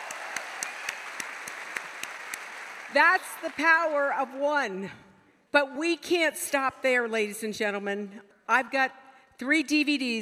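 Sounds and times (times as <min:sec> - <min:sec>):
audience applause at an afternoon gathering: 0:00.0 - 0:03.8
speech: 0:02.9 - 0:10.2.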